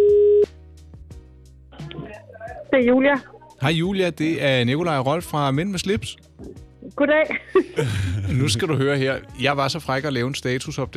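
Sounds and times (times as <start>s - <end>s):
electronic telephone tone: 0.0s - 0.5s
speech: 2.8s - 10.9s.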